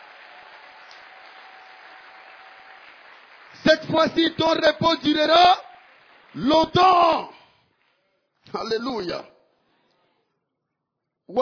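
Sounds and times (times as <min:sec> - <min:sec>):
church congregation applauding the Lord: 0:00.0 - 0:08.9
speech: 0:03.6 - 0:05.6, 0:06.3 - 0:07.4, 0:08.5 - 0:09.3, 0:11.3 - 0:11.4.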